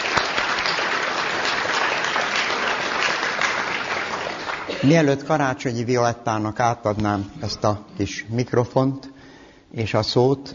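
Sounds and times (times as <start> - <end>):
audience applause: 0.0 - 4.9
speech: 4.8 - 9.1, 9.7 - 10.5.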